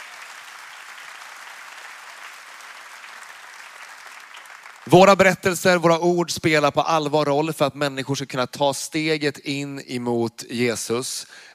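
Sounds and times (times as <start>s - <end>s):
church audience applause: 0.0s - 5.4s
speech: 4.9s - 11.5s.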